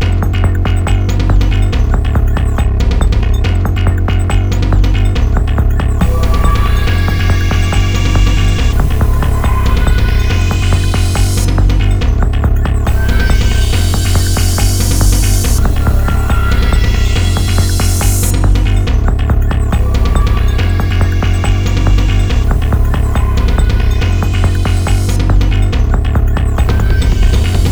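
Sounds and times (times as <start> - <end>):
electronic music: 0.0 - 27.7.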